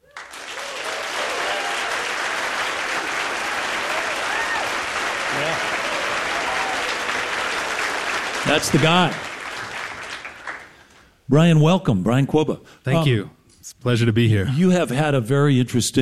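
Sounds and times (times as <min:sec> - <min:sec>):
audience applause welcoming a guest onstage: 0:00.0 - 0:11.0
speech: 0:08.5 - 0:09.2, 0:11.3 - 0:16.0.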